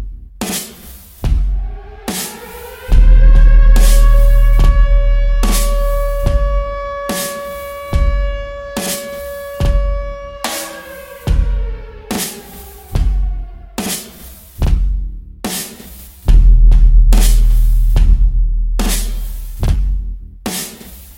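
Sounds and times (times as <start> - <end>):
808 bass: 1.3 - 13.8, 16.3 - 20.4.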